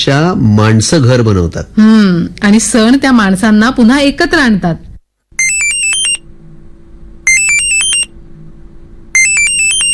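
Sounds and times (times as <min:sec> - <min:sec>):
speech: 0:00.0 - 0:04.9
bright electronic video call ringtone on a phone: 0:05.4 - 0:06.2, 0:07.3 - 0:08.1, 0:09.2 - 0:09.9.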